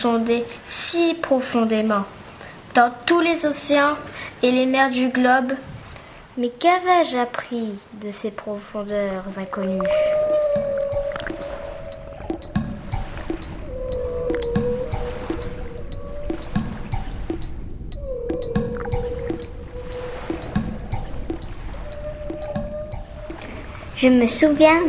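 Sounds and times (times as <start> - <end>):
speech: 0.0 - 2.2, 2.8 - 5.7, 6.4 - 10.7, 24.0 - 24.8
bubbly watery wash: 8.9 - 24.8
whale song from a whale swimming at the ocean surface: 8.9 - 24.8.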